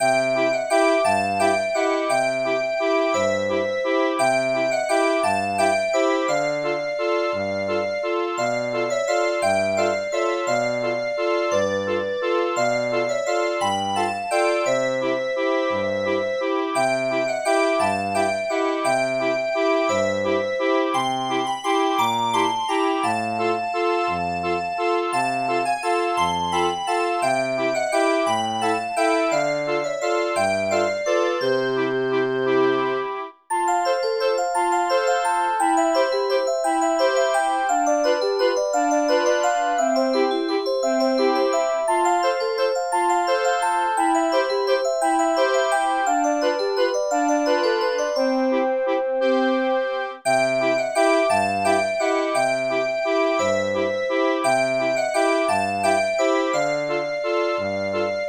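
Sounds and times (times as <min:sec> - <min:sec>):
music box house music: 0:00.0 - 0:32.8, 0:33.5 - 0:58.2.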